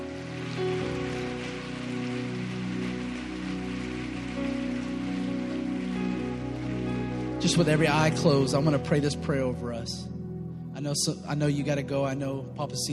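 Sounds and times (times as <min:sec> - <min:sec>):
audience hand clapping: 0:00.0 - 0:09.0
sustained low musical tones: 0:00.0 - 0:12.9
speech: 0:07.4 - 0:10.2, 0:10.8 - 0:12.9.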